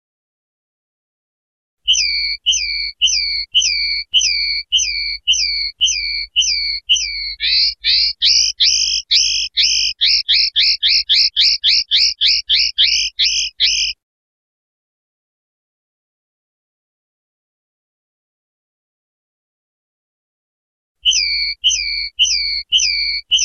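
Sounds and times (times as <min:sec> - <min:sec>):
European goldfinch trilling song: 0:01.9 - 0:14.0, 0:21.0 - 0:23.4.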